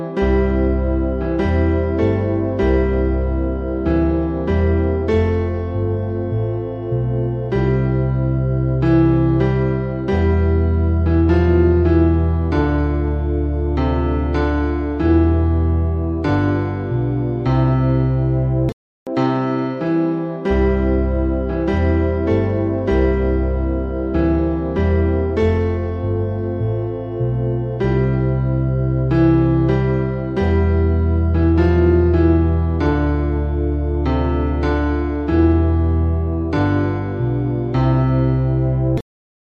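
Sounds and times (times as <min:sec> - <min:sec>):
bass: 0:00.2 - 0:19.2, 0:20.4 - 0:39.0.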